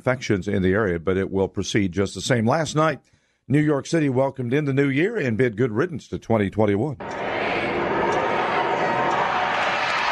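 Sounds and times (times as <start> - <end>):
speech: 0.0 - 7.2
crowd cheering in Times Square as the giant ball dropped: 7.0 - 10.1.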